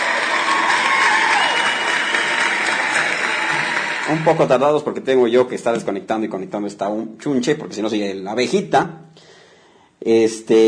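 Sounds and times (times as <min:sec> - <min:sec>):
applause: 0:00.0 - 0:04.8
speech: 0:04.1 - 0:09.3, 0:10.0 - 0:10.6.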